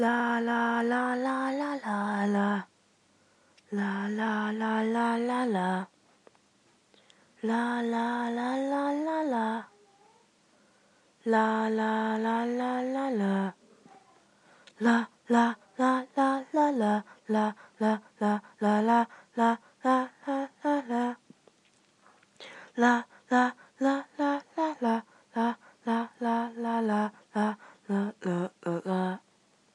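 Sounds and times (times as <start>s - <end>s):
person singing la la la: 0.0s - 2.7s, 3.6s - 6.0s, 7.4s - 9.9s, 11.2s - 13.6s, 14.6s - 21.3s, 22.4s - 29.3s.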